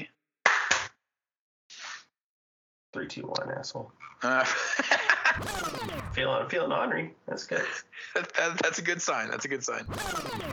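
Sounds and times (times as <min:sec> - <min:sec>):
single hand clap for sync: 0:00.5 - 0:00.9
speech: 0:02.9 - 0:10.5
laughter: 0:04.2 - 0:05.4.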